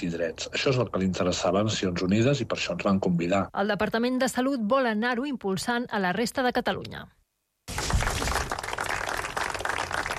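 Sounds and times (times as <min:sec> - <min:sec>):
speech: 0:00.0 - 0:07.2
crowd applause ending a minute of silence: 0:07.7 - 0:10.1.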